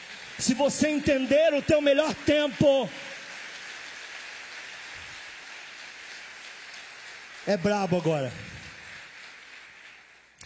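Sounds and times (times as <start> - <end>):
audience applause: 0.0 - 10.4
speech: 0.4 - 3.1, 7.4 - 8.5.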